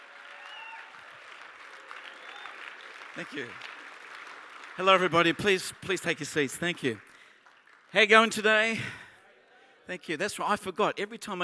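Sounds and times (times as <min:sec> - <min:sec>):
faint whistles and cheers: 0:00.0 - 0:03.0
audience applause: 0:00.0 - 0:08.6
speech: 0:03.2 - 0:03.8, 0:04.8 - 0:07.1, 0:07.9 - 0:09.0, 0:09.9 - 0:11.4.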